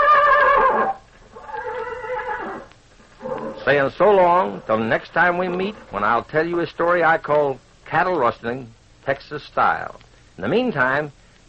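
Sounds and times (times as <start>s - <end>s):
Tarzan, Ken Maynard's horse, neighing: 0.0s - 3.7s
speech: 3.7s - 11.2s.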